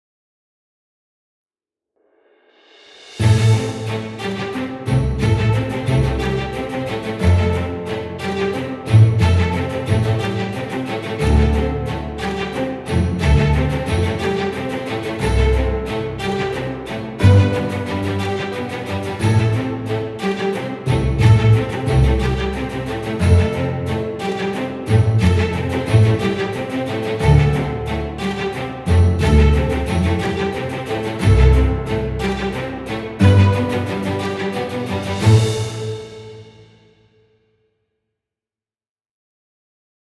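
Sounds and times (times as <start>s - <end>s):
background music: 3.0s - 37.1s.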